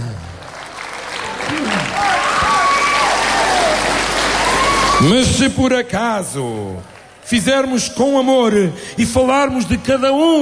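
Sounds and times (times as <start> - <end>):
audience clapping: 0.0 - 5.5, 6.6 - 8.2
speech: 5.0 - 10.4.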